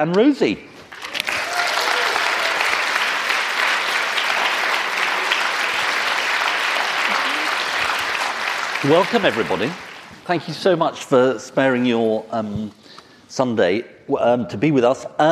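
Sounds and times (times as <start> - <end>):
speech: 0.0 - 0.7, 8.8 - 15.3
audience applause for panel guests: 0.9 - 10.3.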